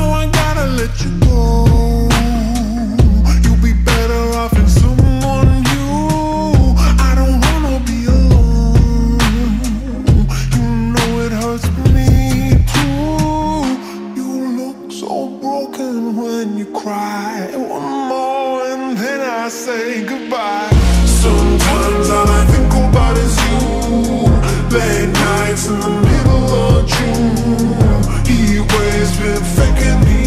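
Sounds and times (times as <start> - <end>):
slowed music with reverb: 0.0 - 30.2.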